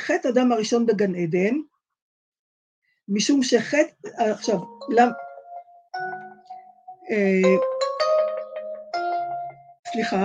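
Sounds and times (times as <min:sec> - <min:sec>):
speech: 0:00.1 - 0:01.7, 0:03.1 - 0:05.2, 0:07.1 - 0:07.7, 0:09.9 - 0:10.2
mobile phone ringing with a melodic ringtone: 0:04.5 - 0:09.8.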